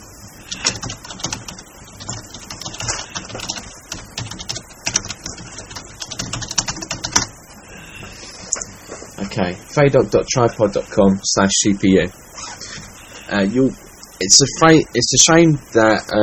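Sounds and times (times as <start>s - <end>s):
typing on a computer keyboard: 0.5s - 7.3s
speech: 9.4s - 12.2s, 13.3s - 16.2s.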